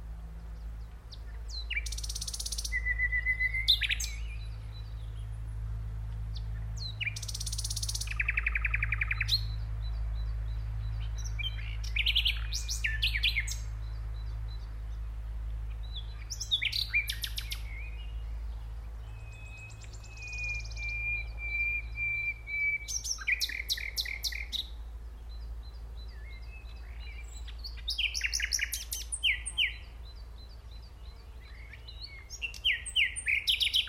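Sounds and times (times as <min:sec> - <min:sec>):
common nightingale Luscinia megarhynchos song: 0:00.0 - 0:33.8.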